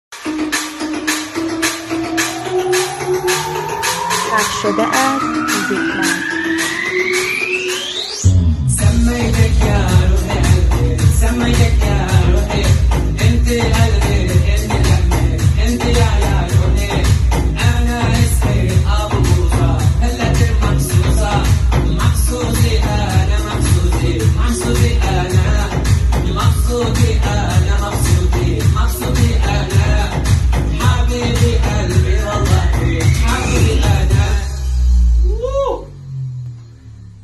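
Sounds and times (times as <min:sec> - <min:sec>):
happy Turkish music: 0:00.1 - 0:34.9.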